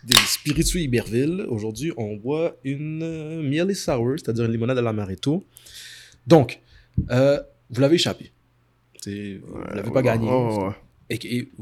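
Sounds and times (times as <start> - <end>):
drink can opening: 0.0 - 0.6
speech: 0.0 - 8.4, 9.0 - 11.5.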